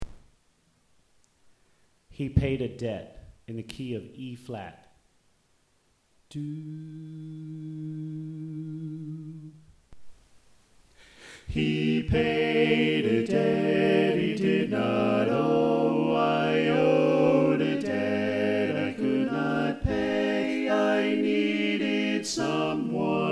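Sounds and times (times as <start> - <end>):
soprano singing: 6.3 - 9.7, 11.5 - 23.3.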